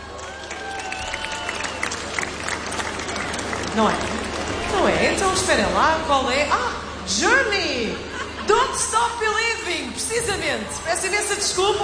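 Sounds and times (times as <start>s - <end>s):
steady audience applause: 0.0s - 5.8s
speech: 3.8s - 11.8s.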